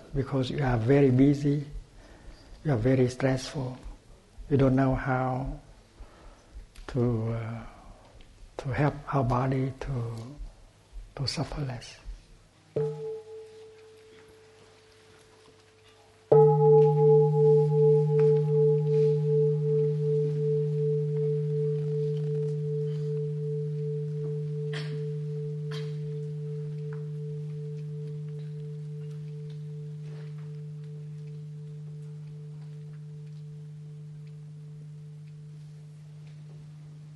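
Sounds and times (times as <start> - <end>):
speech: 0.1 - 1.8, 2.6 - 3.9, 4.5 - 5.6, 6.9 - 7.7, 8.6 - 10.4, 11.2 - 12.0, 12.8 - 13.1
mindfulness bell ringing: 12.8 - 14.7, 16.3 - 37.1.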